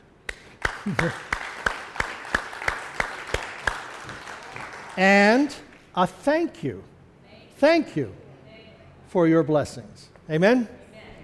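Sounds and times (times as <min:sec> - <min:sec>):
applause in a steady even rhythm: 0:00.3 - 0:05.8
speech: 0:00.8 - 0:01.3, 0:05.0 - 0:06.9, 0:07.6 - 0:08.2, 0:09.1 - 0:10.8.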